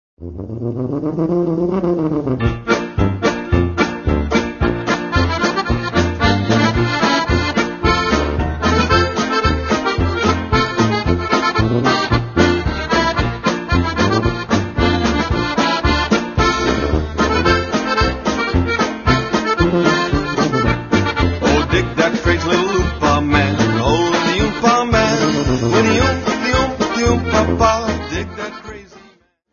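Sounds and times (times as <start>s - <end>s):
oompah band music: 1.7s - 29.1s.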